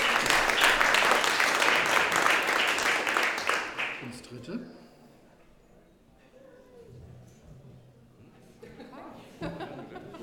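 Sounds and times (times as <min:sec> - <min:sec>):
audience applause: 0:00.0 - 0:04.1
speech: 0:04.5 - 0:04.8
laughter: 0:08.6 - 0:10.2.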